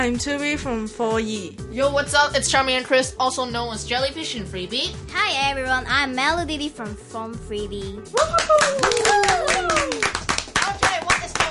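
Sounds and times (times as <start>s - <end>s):
speech: 0.0s - 10.2s
voices whooping and calling out: 8.1s - 10.2s
audience clapping: 8.1s - 11.5s.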